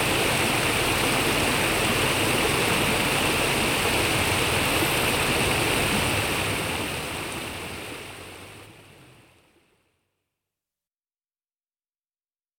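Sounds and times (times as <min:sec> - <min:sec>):
calm river swelling into a flood: 0:00.0 - 0:08.9.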